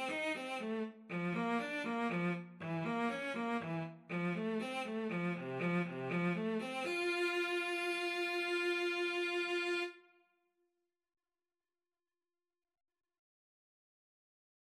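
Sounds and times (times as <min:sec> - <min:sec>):
cello duet: 0:00.0 - 0:10.0.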